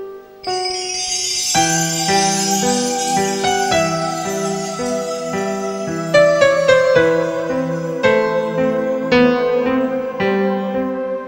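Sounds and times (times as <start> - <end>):
ringtone: 0.4 - 11.1.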